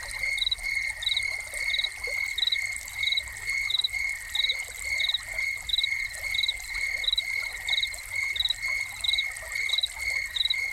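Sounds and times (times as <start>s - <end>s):
crickets chirping: 0.1s - 10.7s.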